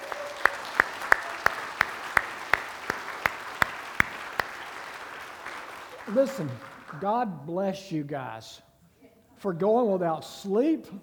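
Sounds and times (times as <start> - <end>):
audience applause: 0.0 - 7.1
speech: 6.1 - 8.7, 9.4 - 11.0.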